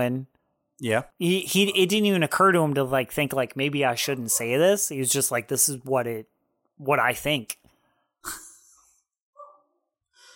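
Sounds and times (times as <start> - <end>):
speech: 0.0 - 7.6, 8.2 - 8.4
dog freaking out, barking and yelping: 9.4 - 9.9.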